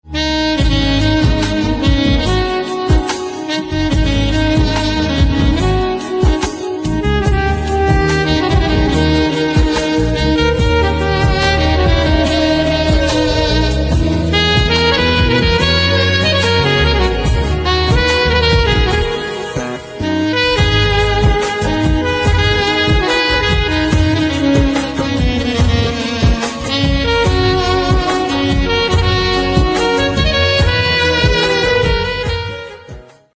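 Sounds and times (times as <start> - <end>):
saxophone: 0.0 - 33.3.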